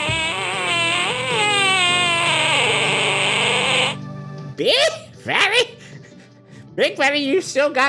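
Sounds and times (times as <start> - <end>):
squealing fart sound effect: 0.0 - 4.0
speech: 4.6 - 5.6, 6.8 - 7.8.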